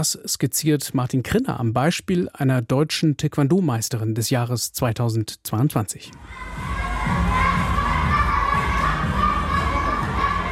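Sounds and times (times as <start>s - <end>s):
speech: 0.0s - 7.5s
youngsters shouting while training in a taekwondo hall in Swisttal near Bonn: 6.2s - 10.5s.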